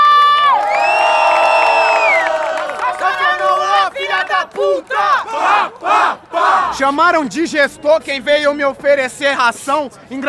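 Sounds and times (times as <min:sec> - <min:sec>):
crowd cheering at a rap battle: 0:00.0 - 0:06.8
speech: 0:04.6 - 0:10.2.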